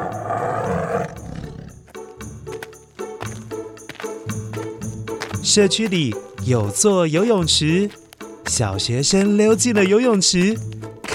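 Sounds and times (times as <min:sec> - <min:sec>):
giant cat roaring: 0:00.0 - 0:01.8
speech: 0:05.5 - 0:11.1.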